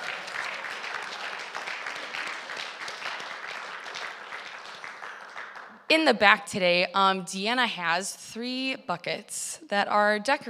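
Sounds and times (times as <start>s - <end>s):
audience applause: 0.0s - 5.8s
speech: 5.9s - 10.4s.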